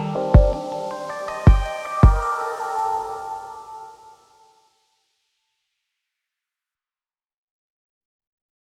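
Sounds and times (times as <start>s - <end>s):
glitch beat: 0.0s - 2.9s.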